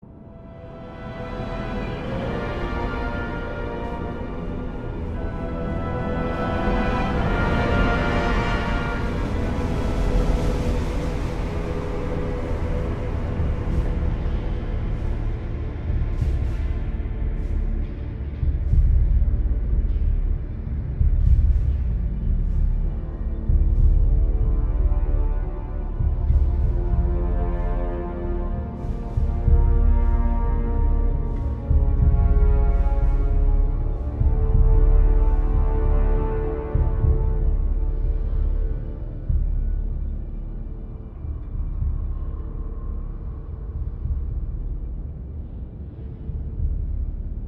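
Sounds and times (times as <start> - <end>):
ambient music: 0.0 - 47.4.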